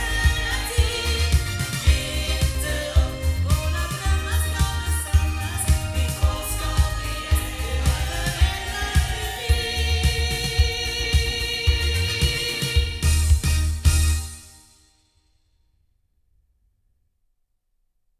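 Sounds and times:
loudspeakers: 0.0s - 14.2s.

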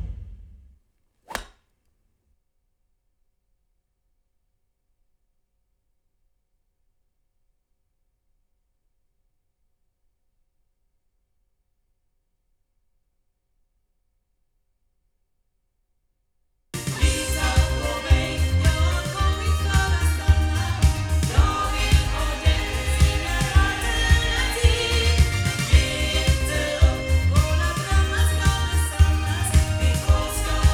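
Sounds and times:
loudspeakers: 16.8s - 30.7s.

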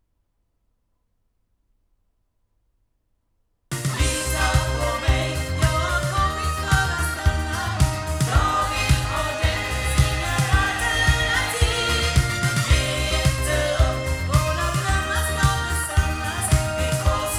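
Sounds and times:
loudspeakers: 3.8s - 17.3s.

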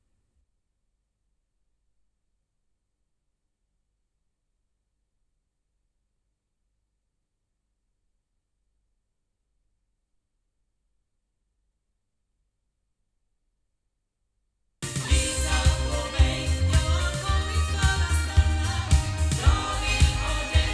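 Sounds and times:
loudspeakers: 14.8s - 20.7s.

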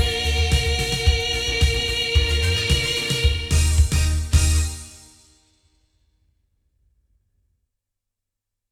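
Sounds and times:
loudspeakers: 0.0s - 4.8s.

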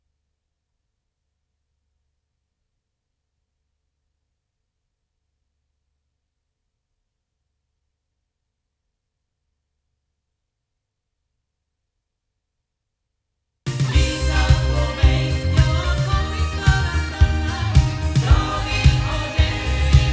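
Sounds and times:
sound from loudspeakers: 13.7s - 20.1s.

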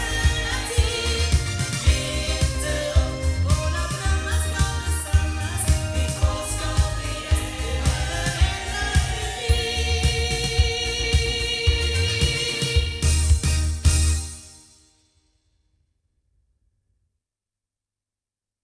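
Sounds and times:
loudspeakers: 0.0s - 14.1s.

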